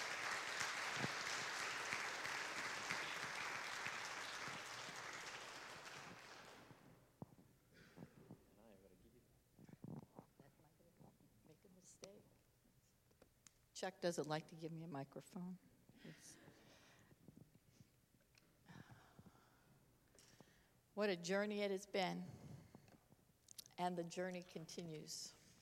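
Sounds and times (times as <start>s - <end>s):
audience applause welcoming a speaker to the stage: 0.0s - 6.8s
speech: 13.8s - 16.3s, 21.0s - 22.4s, 23.8s - 25.4s.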